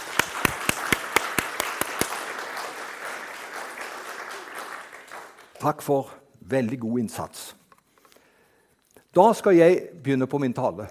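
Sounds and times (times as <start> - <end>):
sharp evenly spaced claps: 0.0 - 5.8
applause: 0.0 - 6.0
speech: 5.6 - 7.6, 9.2 - 10.8.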